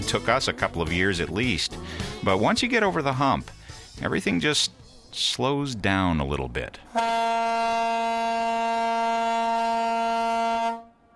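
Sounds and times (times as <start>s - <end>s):
speech: 0.1s - 9.3s
ferry horn sounding at departure: 6.9s - 11.1s.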